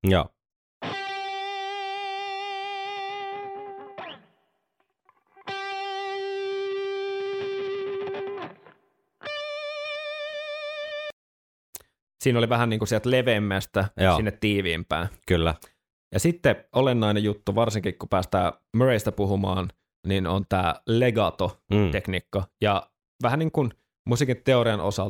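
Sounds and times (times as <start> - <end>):
speech: 0.0 - 0.4, 12.2 - 25.0
distorted electric guitar notes with vibrato: 0.8 - 4.3, 5.2 - 11.1.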